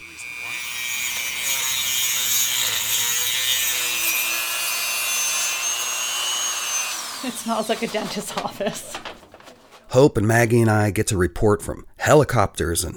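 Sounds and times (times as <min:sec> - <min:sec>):
saw cutting slices of seal bone: 0:00.0 - 0:08.1
speech: 0:07.3 - 0:09.1, 0:09.9 - 0:12.9.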